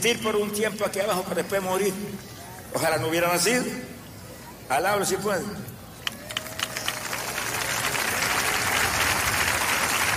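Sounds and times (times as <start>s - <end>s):
speech: 0.0s - 4.0s, 4.7s - 5.7s
audience applauding: 6.0s - 10.1s.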